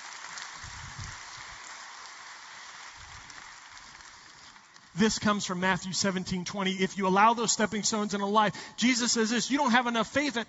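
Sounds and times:
audience applause: 0.0s - 5.0s
speech: 5.0s - 10.4s.

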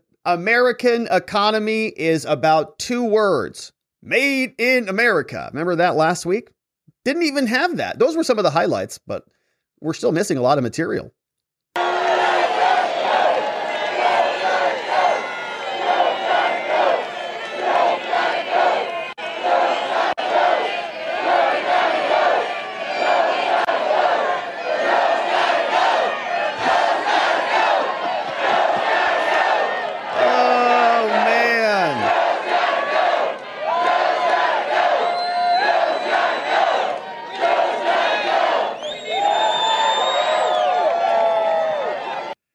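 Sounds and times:
speech: 0.2s - 11.2s
political rally crowd chanting: 11.8s - 42.4s.

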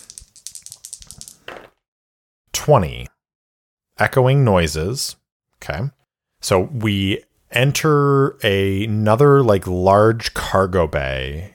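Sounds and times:
dice rolling: 0.0s - 1.8s
speech: 2.6s - 3.2s, 4.0s - 11.5s.

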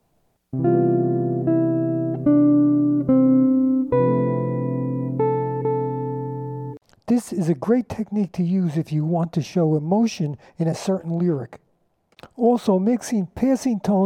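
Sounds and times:
melodic phrase with appoggiaturas over F major seventh chord: 0.6s - 6.8s
speech: 7.2s - 11.6s, 12.4s - 14.0s.

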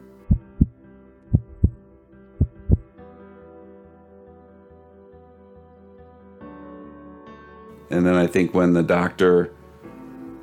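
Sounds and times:
heartbeats picked up by a monitor: 0.2s - 1.8s, 2.4s - 2.9s
speech: 7.9s - 9.6s.

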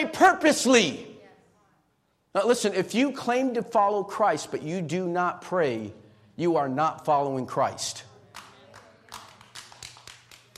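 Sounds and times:
speech: 0.0s - 1.1s, 2.3s - 8.1s
single person clapping: 8.3s - 10.5s.

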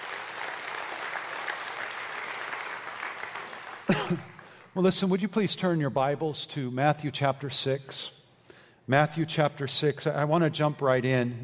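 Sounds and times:
audience applause: 0.0s - 4.6s
speech: 3.9s - 8.2s, 8.9s - 11.4s.

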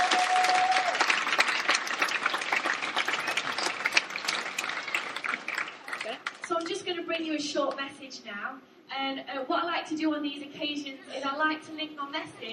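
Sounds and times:
audience applause: 0.0s - 6.6s
speech: 7.4s - 12.5s.

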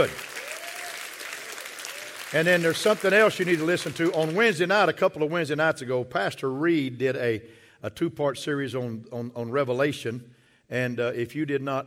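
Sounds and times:
speech: 0.0s - 0.2s, 2.3s - 11.8s
audience applause: 0.0s - 4.7s.

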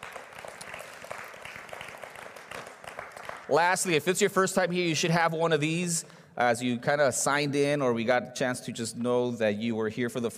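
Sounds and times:
audience applause: 0.0s - 3.8s
speech: 3.5s - 10.3s.

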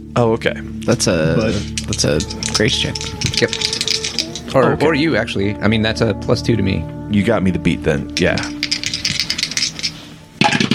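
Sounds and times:
speech: 0.2s - 8.6s
dice rattling across a hard surface: 1.8s - 4.5s, 8.2s - 10.0s.

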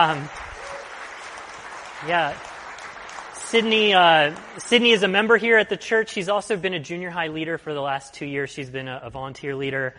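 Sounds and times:
speech: 0.0s - 0.4s, 2.0s - 2.5s, 3.5s - 9.9s
audience applause: 0.0s - 5.6s.

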